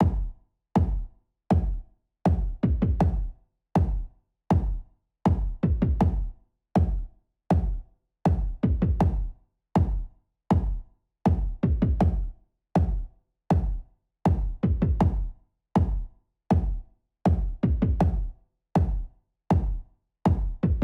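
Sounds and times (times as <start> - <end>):
drums: 0.0 - 20.8.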